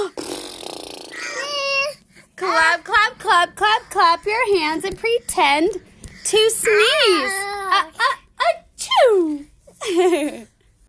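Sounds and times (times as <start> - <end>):
lips blowing a wet raspberry: 0.0 - 1.4
speech: 2.5 - 7.9, 9.1 - 10.5.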